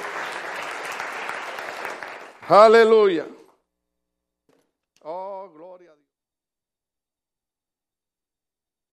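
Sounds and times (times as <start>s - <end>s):
audience applause: 0.0s - 3.3s
speech: 2.5s - 3.4s.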